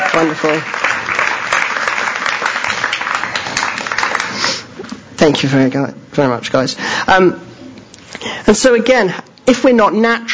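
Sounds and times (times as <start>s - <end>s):
audience applause: 0.0s - 4.7s
speech: 0.2s - 0.8s, 5.2s - 7.5s, 8.1s - 10.3s.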